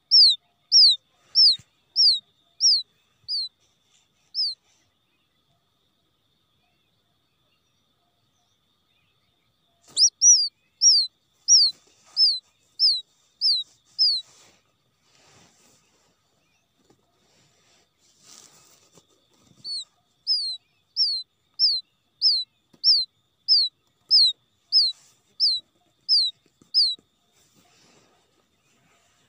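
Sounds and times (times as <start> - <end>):
quail chick distress calls: 0.0 - 4.8, 9.8 - 14.6, 15.7 - 28.8
faint soft rustles: 3.0 - 5.0, 11.3 - 20.2, 24.9 - 29.2.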